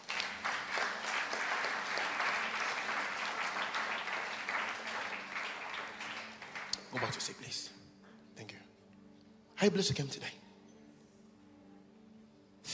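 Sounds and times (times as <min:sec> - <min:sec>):
audience clapping hands: 0:00.0 - 0:07.6
speech: 0:06.9 - 0:07.8, 0:08.4 - 0:08.6, 0:09.6 - 0:10.4.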